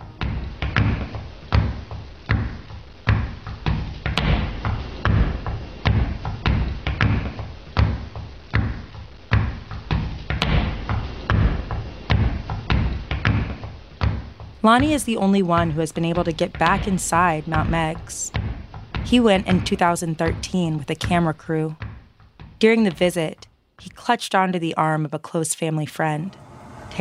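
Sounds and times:
rhythmic foot stomping rhythm track: 0:00.0 - 0:24.0
speech: 0:14.6 - 0:18.4, 0:19.0 - 0:21.8, 0:22.6 - 0:26.9.

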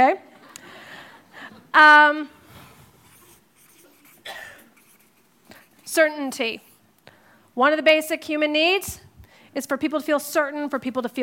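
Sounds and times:
speech: 0:00.0 - 0:00.3, 0:01.8 - 0:02.4, 0:05.9 - 0:06.7, 0:07.6 - 0:11.2
faint scratching of writing: 0:02.4 - 0:06.9
squeaking stroke of words being written down: 0:02.6 - 0:06.8.

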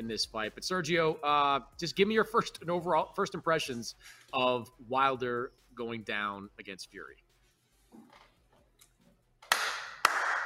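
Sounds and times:
speech: 0:00.0 - 0:07.2
applause: 0:09.5 - 0:10.4.

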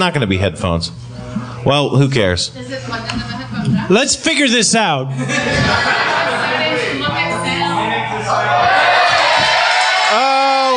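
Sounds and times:
speech: 0:00.0 - 0:07.0
laughter: 0:05.1 - 0:09.4
audience cheering: 0:08.2 - 0:10.7.

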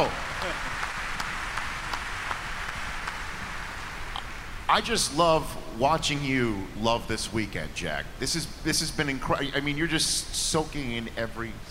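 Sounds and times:
round of applause: 0:00.0 - 0:04.2
speech: 0:04.7 - 0:11.6.

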